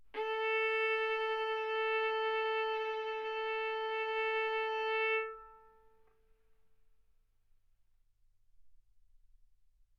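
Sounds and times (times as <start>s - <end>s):
violin bowed arco notes: 0.1s - 5.9s.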